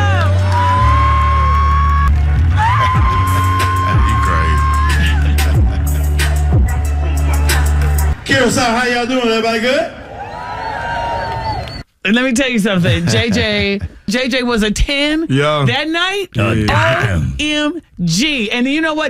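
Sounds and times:
audience clapping: 0:00.0 - 0:08.8, 0:10.1 - 0:11.8
laughter: 0:02.6 - 0:08.1, 0:12.7 - 0:14.1
speech: 0:08.4 - 0:10.0, 0:12.0 - 0:19.0.

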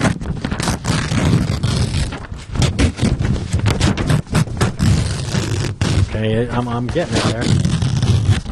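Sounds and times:
tearing open a tightly sealed envelope: 0:00.0 - 0:08.5
speech: 0:06.2 - 0:07.8.

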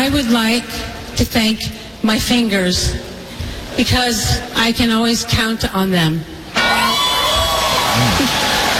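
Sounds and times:
speech: 0:00.1 - 0:03.0, 0:03.8 - 0:06.8
crowd cheering and whooping: 0:06.5 - 0:08.7.

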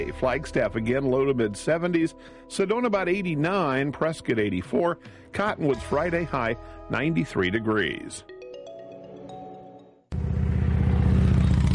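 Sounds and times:
speech: 0:00.0 - 0:08.3
Harley-Davidson motorcycle engine in a radio ad: 0:10.1 - 0:11.7.

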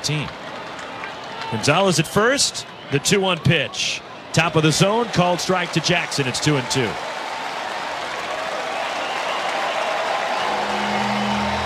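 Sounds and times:
speech: 0:00.0 - 0:00.4, 0:01.5 - 0:07.1
large baseball stadium crowd cheering and applauding: 0:00.0 - 0:11.6.

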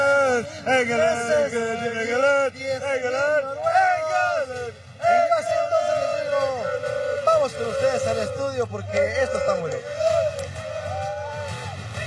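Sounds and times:
crowd of people shouting: 0:00.0 - 0:12.0
speech: 0:00.8 - 0:05.5, 0:07.4 - 0:10.3.

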